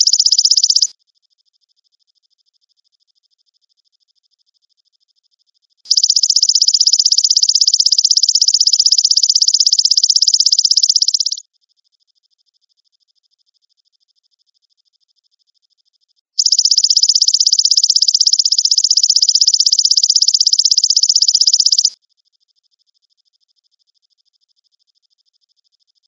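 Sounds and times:
grasshopper trilling: 0.0 - 0.9, 5.9 - 11.4, 16.4 - 22.0.

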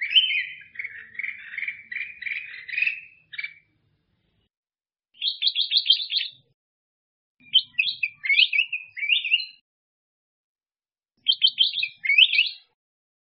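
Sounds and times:
black-crested bulbul singing: 0.0 - 3.8, 5.2 - 6.5, 7.4 - 9.6, 11.2 - 12.8.

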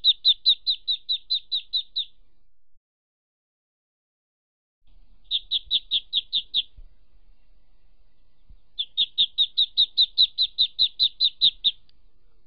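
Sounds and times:
duckling peeps: 0.0 - 2.2, 5.1 - 11.9.

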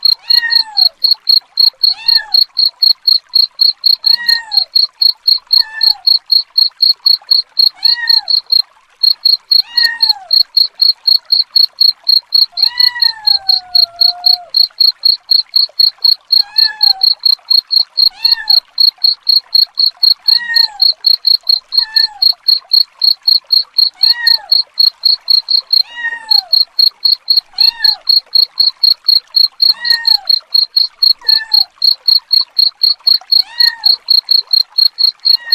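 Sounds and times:
cricket chirps: 0.0 - 35.5
cat meowing: 0.2 - 1.0, 1.9 - 2.4, 4.1 - 4.7, 5.5 - 6.1, 7.8 - 8.4, 9.6 - 10.4, 12.5 - 14.5, 16.4 - 17.2, 18.1 - 18.6, 20.2 - 21.0, 21.7 - 22.2, 24.0 - 24.6, 25.8 - 26.6, 27.5 - 28.1, 29.7 - 30.4, 31.2 - 31.8, 33.4 - 34.1, 35.4 - 35.5.

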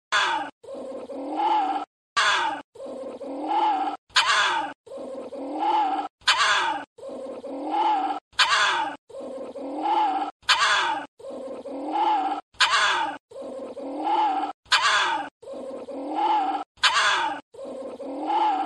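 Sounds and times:
small Indian civet moaning: 0.1 - 18.6.

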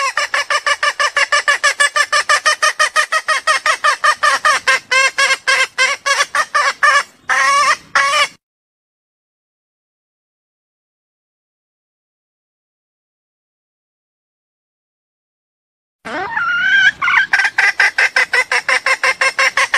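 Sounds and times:
junglefowl clucking: 0.0 - 8.4, 16.1 - 19.7.

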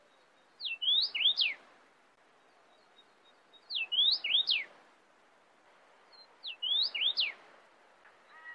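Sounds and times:
cardinal singing sweeping whistled phrases: 0.6 - 1.6, 3.7 - 4.7, 6.5 - 7.4.

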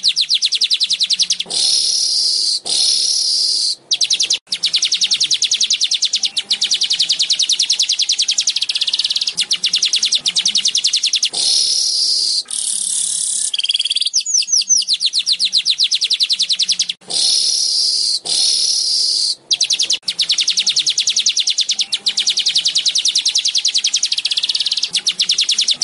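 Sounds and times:
Asian golden weaver chattering: 0.0 - 25.8.

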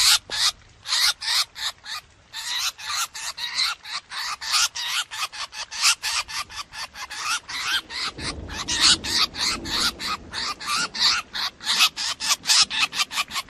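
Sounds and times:
drongo distress calls: 0.0 - 13.4
faint low rumble: 6.8 - 11.7.

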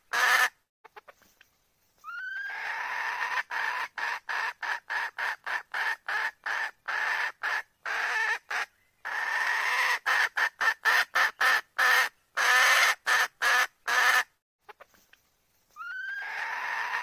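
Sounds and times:
red junglefowl hen cackling: 0.0 - 1.1, 2.1 - 14.9, 15.8 - 17.0.

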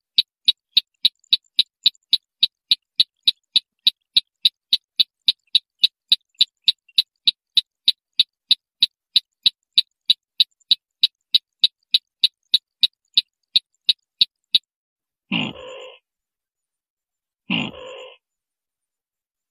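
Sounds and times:
white-breasted waterhen train of sharp clicks: 0.0 - 14.7.

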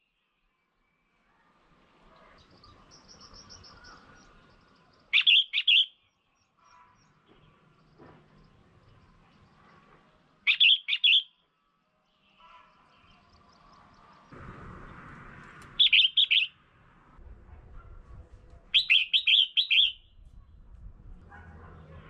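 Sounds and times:
red-whiskered bulbul chattering calls: 2.4 - 6.0, 10.5 - 11.3, 15.8 - 16.5, 18.8 - 20.1.

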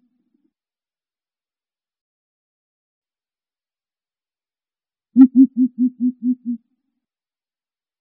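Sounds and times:
greater coucal deep hollow hoots: 5.2 - 6.6.

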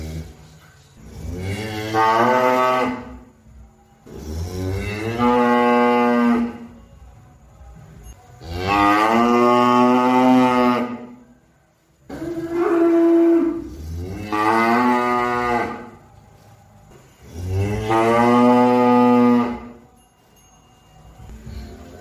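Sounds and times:
cow mooing: 1.0 - 3.3, 4.0 - 6.7, 8.4 - 11.2, 12.1 - 16.0, 17.2 - 19.8
speech: 1.9 - 2.4.

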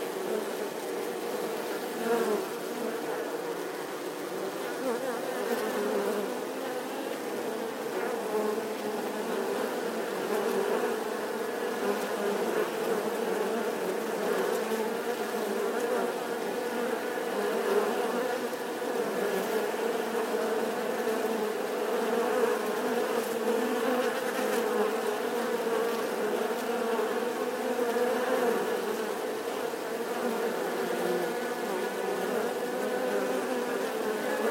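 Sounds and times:
wasp swarm humming: 0.0 - 34.4.

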